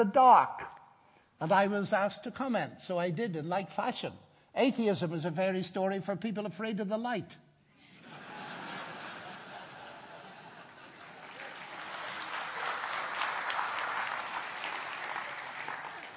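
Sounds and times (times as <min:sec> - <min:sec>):
speech: 0:00.0 - 0:00.7, 0:01.4 - 0:07.4
laughter: 0:07.8 - 0:13.2
audience applause: 0:09.6 - 0:16.1.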